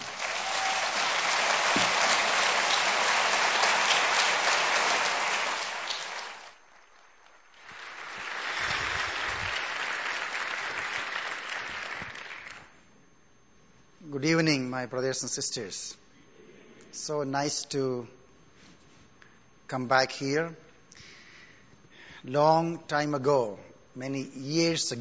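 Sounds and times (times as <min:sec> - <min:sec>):
church audience applauding to welcome the speaker KP Yohannan: 0:00.0 - 0:12.8
speech: 0:14.3 - 0:16.0, 0:17.0 - 0:18.2, 0:19.7 - 0:20.6, 0:22.2 - 0:25.0.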